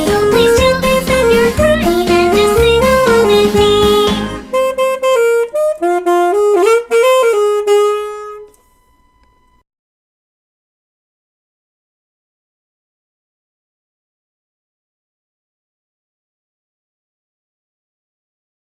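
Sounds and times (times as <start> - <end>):
alto saxophone cover with a little improvisation: 0.3 - 8.7.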